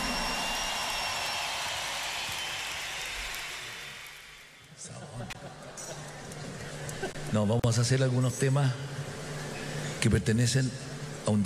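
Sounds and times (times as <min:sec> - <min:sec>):
audience applause: 0:00.0 - 0:04.8
speech: 0:07.0 - 0:09.0, 0:10.0 - 0:11.4.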